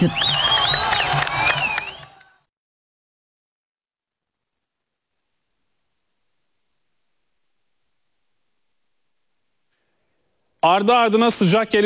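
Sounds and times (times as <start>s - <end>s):
speech: 0.0s - 0.4s, 10.6s - 11.8s
crowd cheering and clapping after football win: 0.0s - 2.4s
shrill whistles or ululating cries: 0.0s - 2.4s.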